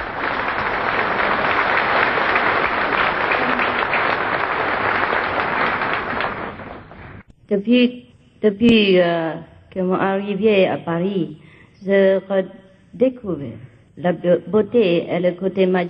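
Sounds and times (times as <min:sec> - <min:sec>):
audience applause: 0:00.0 - 0:07.2
speech: 0:07.5 - 0:15.8.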